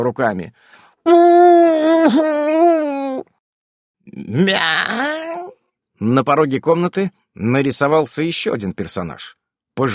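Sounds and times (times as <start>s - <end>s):
speech: 0.0s - 3.3s, 4.1s - 9.9s
woman's plaintive moan: 1.1s - 3.3s.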